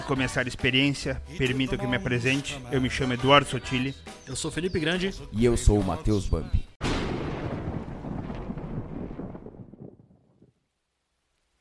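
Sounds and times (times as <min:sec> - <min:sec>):
speech: 0:00.1 - 0:06.7
thunder rumbling: 0:06.8 - 0:10.7.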